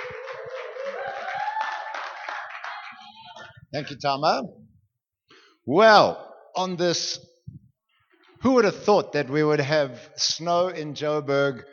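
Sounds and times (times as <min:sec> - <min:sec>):
audience applause: 0:00.0 - 0:03.6
speech: 0:03.7 - 0:04.6, 0:05.6 - 0:07.3, 0:08.4 - 0:11.7.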